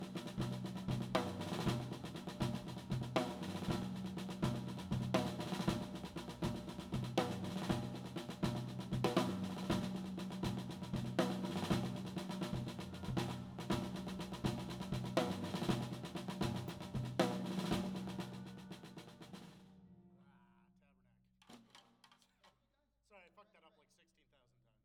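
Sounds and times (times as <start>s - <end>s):
tom drum: 0.0s - 19.7s.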